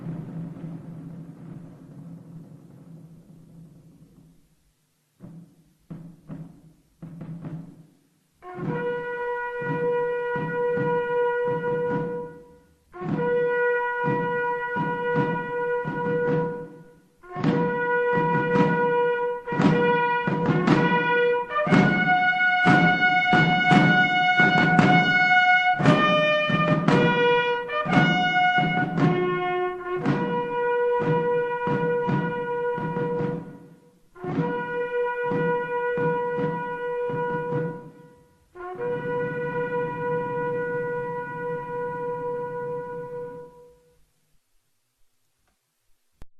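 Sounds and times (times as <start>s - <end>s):
French military bugle call for the dead: 8.4s - 44.0s.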